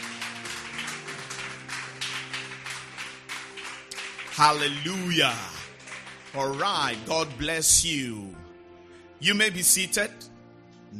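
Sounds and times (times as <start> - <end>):
audience hand clapping: 0.0 - 7.6
speech: 4.4 - 5.6, 6.3 - 8.4, 9.2 - 10.3.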